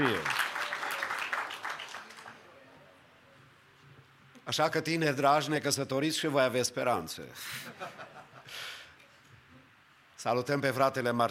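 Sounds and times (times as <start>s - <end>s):
audience applause: 0.0s - 2.5s
speech: 4.5s - 8.8s, 10.2s - 11.2s
laughter: 7.4s - 8.5s.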